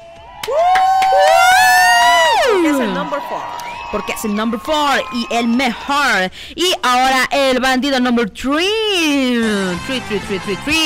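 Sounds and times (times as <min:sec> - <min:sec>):
applause: 0:00.0 - 0:05.8
cheering: 0:00.0 - 0:06.2
speech: 0:00.4 - 0:00.7, 0:03.3 - 0:10.8.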